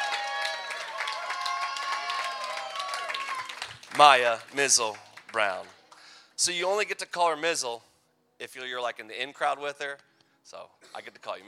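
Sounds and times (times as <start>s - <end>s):
audience applause: 0.0s - 6.0s
speech: 4.0s - 5.8s, 6.4s - 11.4s.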